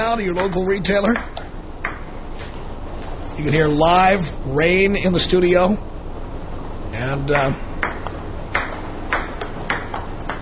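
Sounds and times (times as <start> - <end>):
speech: 0.0 - 1.5, 3.4 - 5.9, 7.0 - 7.8
ping pong game being played: 0.0 - 2.2, 7.3 - 10.4.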